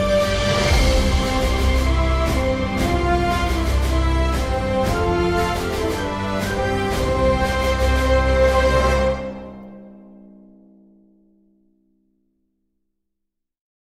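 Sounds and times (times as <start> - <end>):
orchestral victory fanfare: 0.0 - 10.2.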